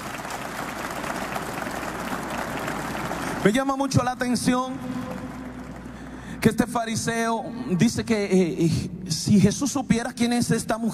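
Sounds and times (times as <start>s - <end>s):
audience applause: 0.0s - 4.0s, 4.6s - 6.2s
speech: 3.4s - 5.0s, 6.4s - 10.9s.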